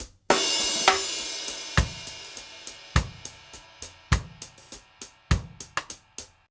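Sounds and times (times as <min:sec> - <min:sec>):
fill: 0:00.0 - 0:06.4.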